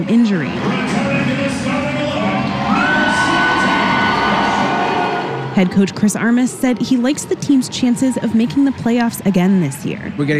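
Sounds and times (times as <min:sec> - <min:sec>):
speech: 0:00.0 - 0:00.9, 0:05.6 - 0:10.3
soccer fans cheering in a stadium at a Current match: 0:00.5 - 0:09.9
whoops and yells: 0:02.3 - 0:05.5.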